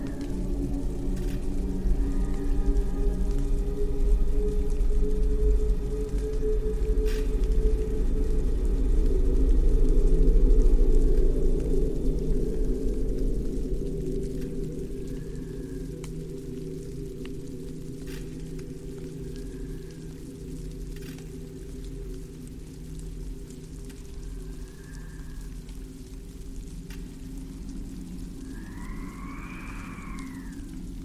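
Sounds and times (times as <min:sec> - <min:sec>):
low droning rumble with layered tones: 0:00.0 - 0:31.0
faint whale-like arcing calls: 0:28.4 - 0:30.8.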